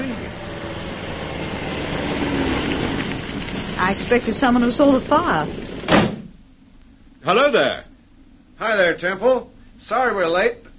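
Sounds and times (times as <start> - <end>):
car approaching: 0.0 - 5.9
speech: 3.9 - 5.6, 7.2 - 7.9, 8.6 - 10.6.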